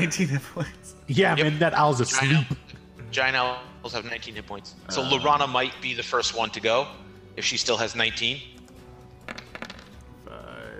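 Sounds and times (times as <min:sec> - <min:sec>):
speech: 0:00.0 - 0:08.6
dice being rolled: 0:09.2 - 0:10.1.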